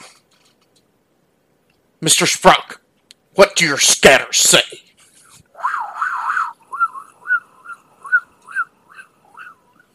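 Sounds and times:
speech: 0:02.0 - 0:02.8, 0:03.4 - 0:04.8
birds chirping: 0:05.6 - 0:09.9.

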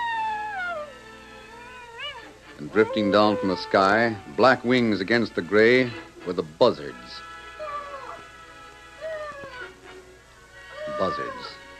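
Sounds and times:
coyote howling: 0:00.0 - 0:05.0, 0:07.4 - 0:08.3, 0:08.9 - 0:09.8, 0:10.7 - 0:11.7
speech: 0:02.6 - 0:07.3.

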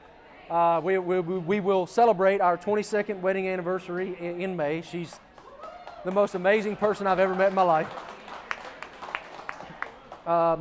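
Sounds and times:
speech: 0:00.5 - 0:05.2, 0:06.0 - 0:08.2, 0:10.3 - 0:10.6
live audience applause: 0:05.3 - 0:10.3.

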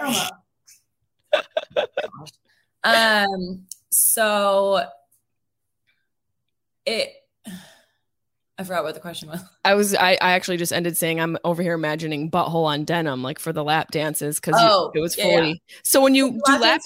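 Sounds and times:
person mimicking sneezes: 0:00.0 - 0:00.4
speech: 0:00.1 - 0:00.4, 0:02.8 - 0:05.0, 0:06.9 - 0:07.7, 0:08.6 - 0:16.8
laughter: 0:01.2 - 0:02.3.

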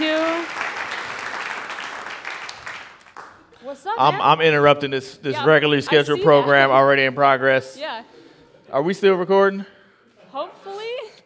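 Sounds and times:
audience applause: 0:00.0 - 0:03.5
speech: 0:03.8 - 0:08.1, 0:08.7 - 0:10.6.

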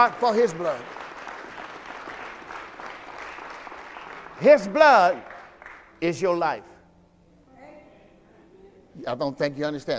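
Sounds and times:
speech: 0:00.0 - 0:01.0, 0:04.4 - 0:05.3, 0:06.0 - 0:06.7, 0:09.0 - 0:09.9
people clapping hands: 0:00.0 - 0:06.0.

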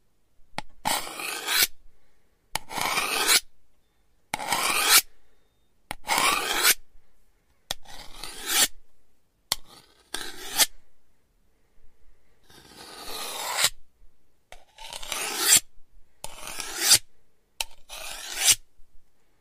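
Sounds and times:
knife drawn across a sharpening stone: 0:00.9 - 0:01.7, 0:02.6 - 0:03.4, 0:04.4 - 0:05.1, 0:06.0 - 0:06.8, 0:07.8 - 0:08.7, 0:09.5 - 0:10.7, 0:12.5 - 0:13.8, 0:14.6 - 0:15.6, 0:16.2 - 0:17.0, 0:17.6 - 0:18.6.

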